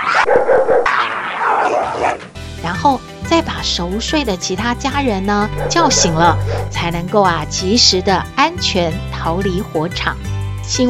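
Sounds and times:
bulldog barking: 0:00.0 - 0:02.2
speech: 0:02.8 - 0:10.8.

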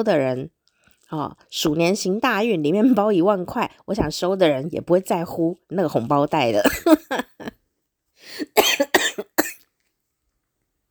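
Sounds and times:
speech: 0:00.0 - 0:07.5, 0:08.2 - 0:09.3
coughing: 0:06.6 - 0:07.5, 0:08.4 - 0:09.7.

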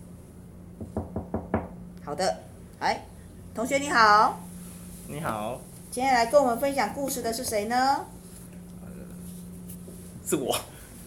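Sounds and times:
knocking on a door: 0:00.8 - 0:01.8
speech: 0:02.1 - 0:04.5, 0:05.1 - 0:08.1, 0:10.3 - 0:10.7.

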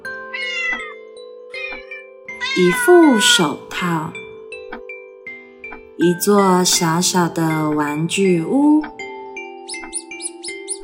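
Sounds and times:
kittens meowing: 0:00.2 - 0:03.5
speech: 0:02.6 - 0:04.2, 0:06.0 - 0:09.0.

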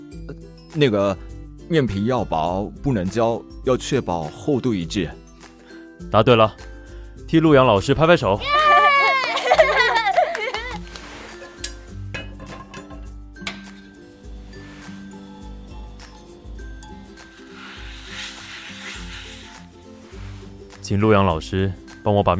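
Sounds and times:
speech: 0:00.3 - 0:05.2, 0:06.0 - 0:06.7, 0:07.3 - 0:08.6, 0:20.9 - 0:22.3
laughter: 0:08.5 - 0:10.8
soft sizzling: 0:10.8 - 0:21.6
pots and pans clinking during cooking: 0:11.0 - 0:15.1.

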